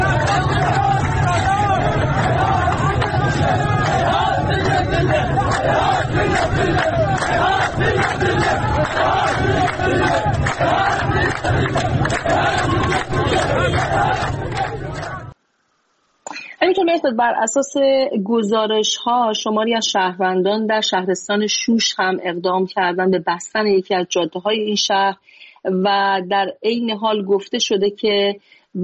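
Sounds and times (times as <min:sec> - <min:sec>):
protesters shouting: 0:00.0 - 0:15.3
protesters chanting a slogan outside an MP's office in Khuzestan: 0:00.0 - 0:15.4
speech: 0:17.1 - 0:28.8.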